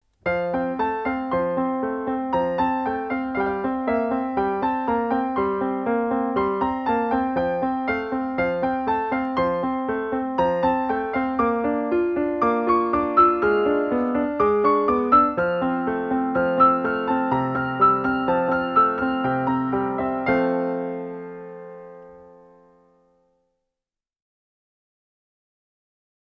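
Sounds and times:
solo piano: 0.0s - 23.4s.

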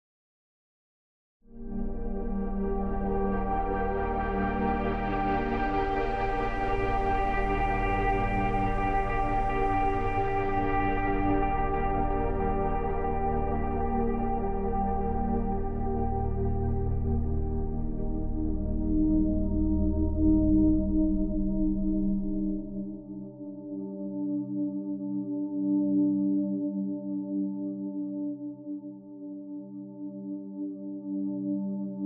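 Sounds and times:
ambient music: 1.5s - 32.0s.

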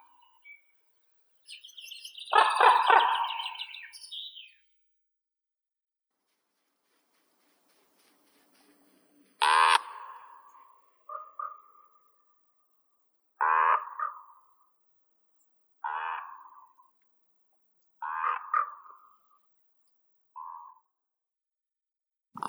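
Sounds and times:
common raven Corvus corax: 1.5s - 4.5s, 7.1s - 12.6s, 13.4s - 14.8s, 15.8s - 17.0s, 18.0s - 19.5s, 20.4s - 20.9s.

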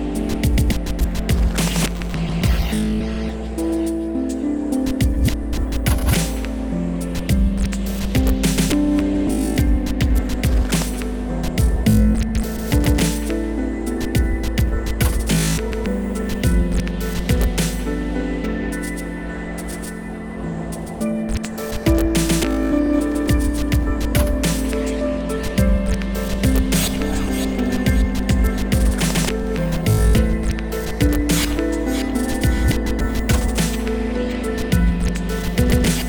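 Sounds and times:
instrumental music: 0.0s - 36.0s.

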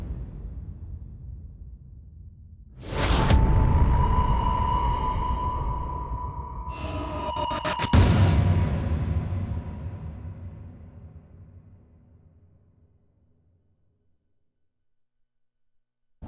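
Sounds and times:
percussion: 2.8s - 11.8s.

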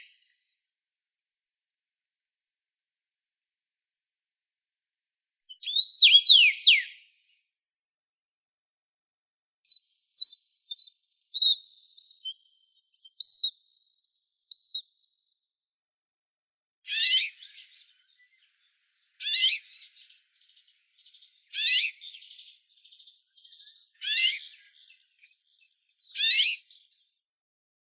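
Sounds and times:
common rosefinch Carpodacus erythrinus: 5.5s - 6.9s, 9.7s - 14.8s, 16.9s - 27.2s.

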